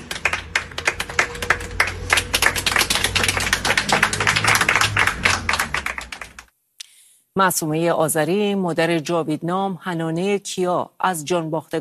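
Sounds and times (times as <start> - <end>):
audience clapping at a memorial gathering: 0.0 - 6.5
speech: 7.4 - 11.7.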